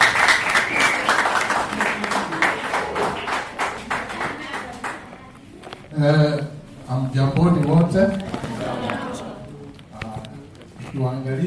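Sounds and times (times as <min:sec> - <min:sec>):
audience applause at a Kenyan political gathering welcoming a Kenya Patriots Party guest: 0:00.0 - 0:05.1
speech: 0:06.0 - 0:08.4, 0:11.0 - 0:11.4.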